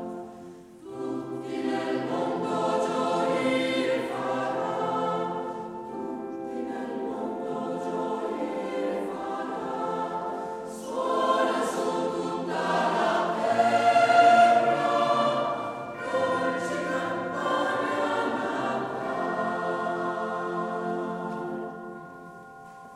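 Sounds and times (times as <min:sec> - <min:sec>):
sweet Christmas bells ringing: 0:00.1 - 0:22.9.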